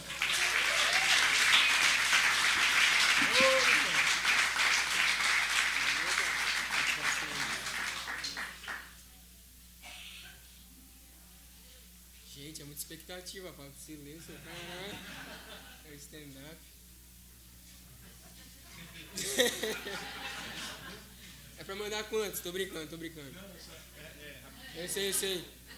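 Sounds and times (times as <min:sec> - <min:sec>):
audience applause: 0:00.0 - 0:09.0
laughter: 0:03.0 - 0:04.3, 0:14.2 - 0:15.8, 0:17.9 - 0:21.4, 0:23.6 - 0:25.7
speech: 0:13.2 - 0:16.7, 0:19.4 - 0:20.2, 0:21.7 - 0:25.6.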